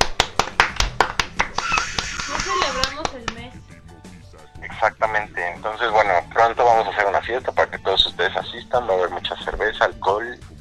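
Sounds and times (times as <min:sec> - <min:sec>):
applause: 0:00.0 - 0:03.4
speech: 0:04.9 - 0:10.5.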